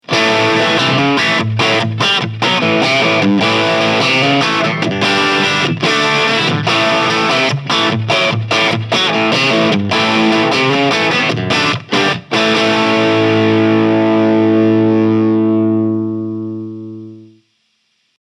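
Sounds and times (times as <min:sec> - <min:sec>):
overdriven electric guitar through JCM 800 high input: 0:00.0 - 0:18.1.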